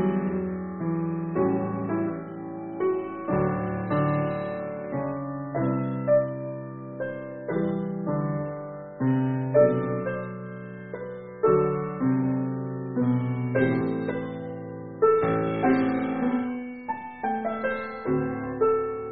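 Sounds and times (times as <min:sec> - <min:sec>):
piano: 0:00.0 - 0:19.1.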